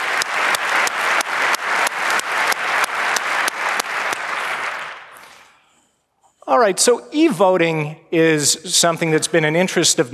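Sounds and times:
audience applause: 0.0 - 5.5
speech: 6.6 - 10.1.

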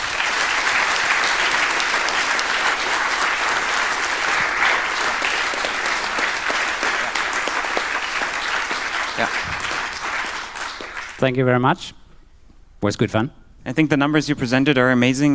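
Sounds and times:
audience applause: 0.0 - 11.2
speech: 11.2 - 12.0, 12.8 - 15.3.

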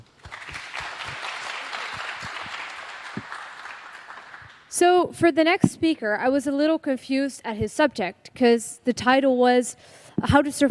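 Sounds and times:
audience applause: 0.0 - 4.7
speech: 4.8 - 10.6.

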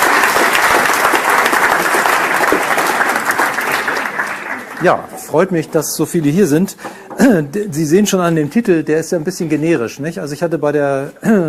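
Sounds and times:
audience applause: 0.0 - 5.5
speech: 4.8 - 11.4.

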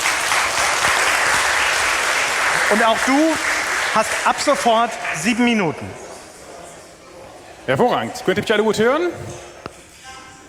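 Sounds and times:
audience applause: 0.0 - 5.9
speech: 2.7 - 6.0, 7.7 - 9.5.

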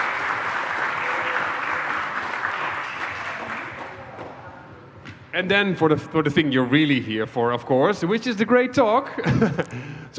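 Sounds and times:
audience applause: 0.0 - 4.4
speech: 5.4 - 10.1
laughter: 9.0 - 10.0.

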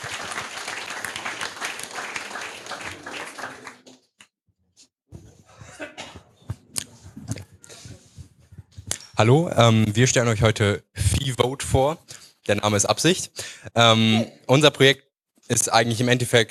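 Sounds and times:
audience applause: 0.0 - 4.0
speech: 9.2 - 16.4.

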